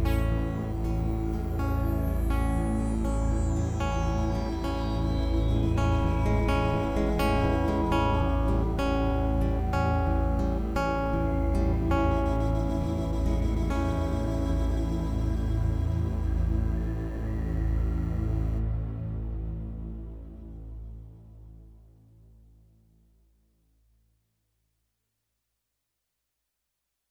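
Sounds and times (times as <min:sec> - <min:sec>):
music interlude: 0:00.0 - 0:19.0.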